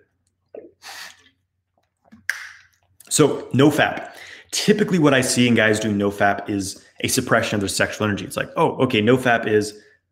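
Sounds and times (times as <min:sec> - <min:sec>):
person drinking a sip of water: 0:00.0 - 0:04.5
speech: 0:03.1 - 0:09.9.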